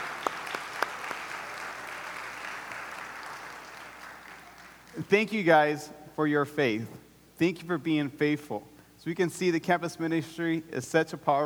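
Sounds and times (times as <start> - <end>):
audience applause: 0.0 - 5.0
speech: 5.0 - 11.4.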